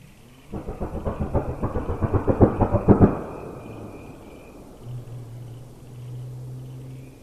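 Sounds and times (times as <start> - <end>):
car: 1.6 - 7.2.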